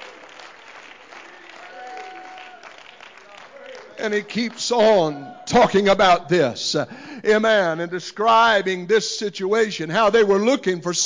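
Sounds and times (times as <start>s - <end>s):
audience clapping hands: 0.0s - 5.1s
speech: 4.0s - 11.0s.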